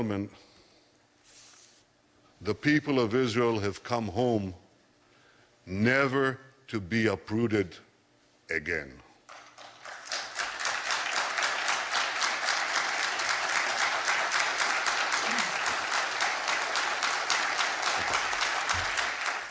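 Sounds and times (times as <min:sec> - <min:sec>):
speech: 0:00.0 - 0:00.5, 0:02.4 - 0:04.6, 0:05.6 - 0:07.8, 0:08.5 - 0:09.0
audience applause: 0:09.6 - 0:19.4.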